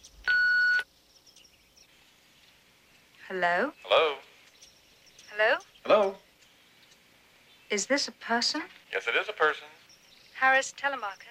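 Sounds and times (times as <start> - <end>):
answering machine beep: 0.3 - 0.8
speech: 3.3 - 4.3, 5.4 - 6.2, 7.7 - 9.8, 10.4 - 11.2.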